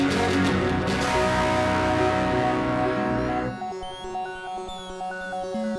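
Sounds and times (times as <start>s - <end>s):
electro rave music: 0.0s - 5.6s.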